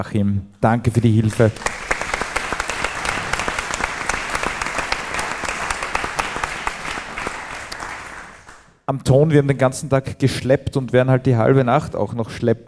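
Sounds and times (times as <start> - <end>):
speech: 0.0 - 1.9, 8.9 - 12.6
audience applause: 0.9 - 8.7.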